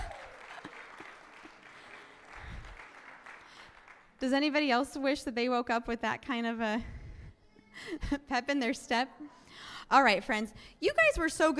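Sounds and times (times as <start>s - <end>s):
audience round of applause: 0.0s - 4.2s
speech: 4.2s - 7.0s, 7.8s - 11.5s.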